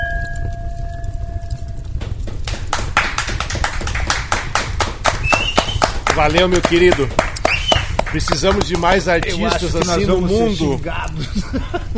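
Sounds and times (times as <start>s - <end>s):
glasses clinking in a toast: 0.0s - 1.9s
low rumble: 0.0s - 11.9s
speech: 6.2s - 7.3s, 8.1s - 11.9s
laughter: 8.2s - 11.9s.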